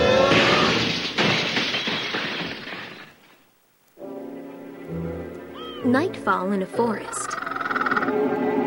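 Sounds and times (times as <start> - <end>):
window glass shattering as someone dives through: 0.0 - 3.4
speech: 5.8 - 7.4, 8.0 - 8.5.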